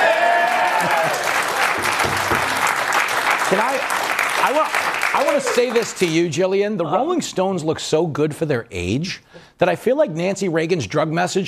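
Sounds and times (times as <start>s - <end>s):
live audience applause: 0.0s - 6.3s
speech: 3.5s - 11.4s.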